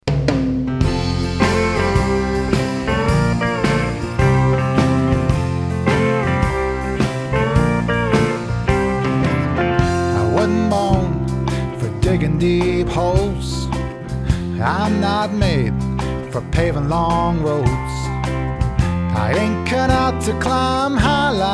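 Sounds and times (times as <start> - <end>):
country band playing: 0.7 - 21.5.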